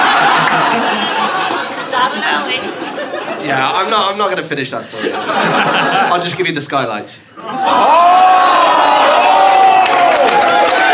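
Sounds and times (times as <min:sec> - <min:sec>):
audience cheering: 0:00.0 - 0:03.1, 0:07.5 - 0:10.9
laughter: 0:00.0 - 0:06.6, 0:07.4 - 0:08.5
speech: 0:03.5 - 0:08.6.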